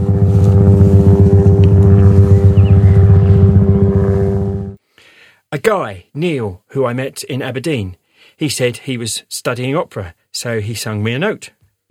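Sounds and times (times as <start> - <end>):
low hum of a passing helicopter: 0.0 - 4.8
speech: 5.5 - 11.8.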